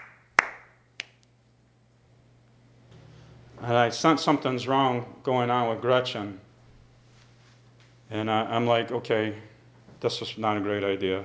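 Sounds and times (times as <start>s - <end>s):
hands clapping: 0.0s - 1.3s
speech: 3.6s - 6.4s, 8.1s - 11.2s.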